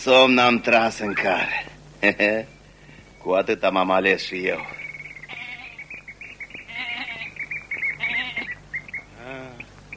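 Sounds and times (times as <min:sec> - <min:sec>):
speech: 0:00.0 - 0:02.6, 0:03.2 - 0:04.8
birds chirping: 0:00.0 - 0:09.9
goat bleating: 0:05.2 - 0:05.9, 0:06.6 - 0:09.7.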